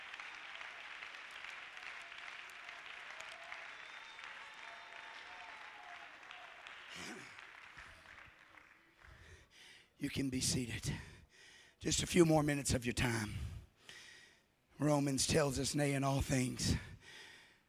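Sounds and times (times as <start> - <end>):
large group clapping: 0.0 - 9.8
speech: 10.0 - 11.1, 11.8 - 13.5, 14.8 - 16.9.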